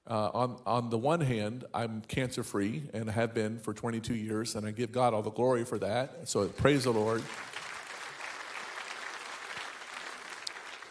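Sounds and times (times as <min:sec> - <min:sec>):
speech: 0:00.1 - 0:07.5
crowd applauding: 0:06.4 - 0:10.8.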